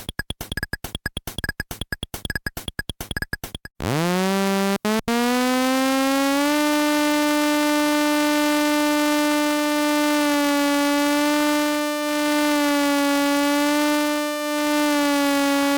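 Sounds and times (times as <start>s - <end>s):
rapid stuttering clicks from a morphing wavetable oscillator: 0.0s - 3.8s
buzzy tone from a morphing wavetable oscillator using a Raspberry Pi Pico: 3.8s - 15.7s.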